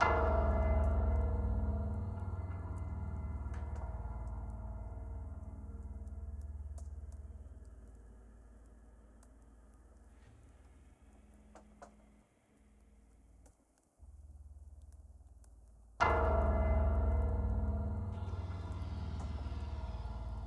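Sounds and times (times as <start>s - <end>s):
burning piano: 0.0s - 20.4s.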